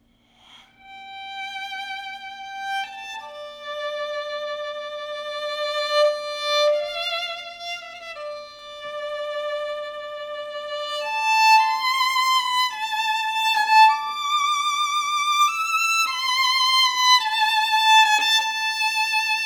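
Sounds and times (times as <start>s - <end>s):
violin: 0.0s - 19.4s.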